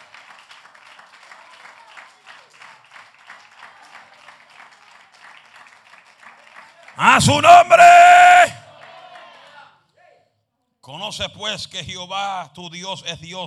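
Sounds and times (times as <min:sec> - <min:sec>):
audience applause: 0:00.0 - 0:09.3
speech: 0:07.0 - 0:08.2, 0:10.9 - 0:13.4.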